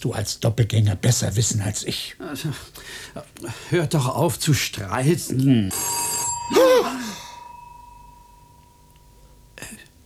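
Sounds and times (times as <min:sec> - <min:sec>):
speech: 0:00.0 - 0:07.1
bell ringing: 0:05.2 - 0:10.0.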